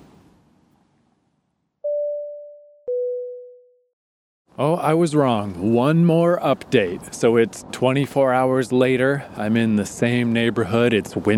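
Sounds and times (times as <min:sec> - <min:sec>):
two-tone airplane announcement electronic chime: 0:01.8 - 0:03.9
speech: 0:04.6 - 0:11.3.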